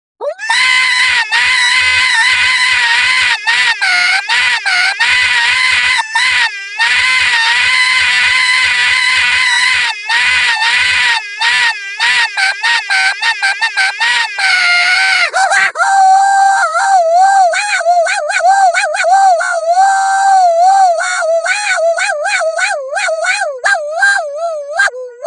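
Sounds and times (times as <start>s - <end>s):
Mario scream: 0.2s - 25.2s
laughter: 0.5s - 15.8s.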